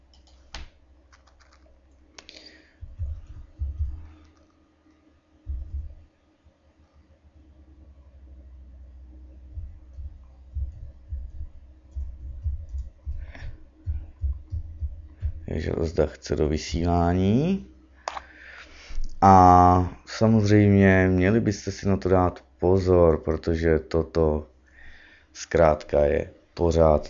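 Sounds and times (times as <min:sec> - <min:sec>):
steady low hum: 0:00.0 - 0:27.0
message being typed on a computer keyboard: 0:00.1 - 0:02.3
speech: 0:15.5 - 0:17.7, 0:20.2 - 0:24.5, 0:25.4 - 0:27.0.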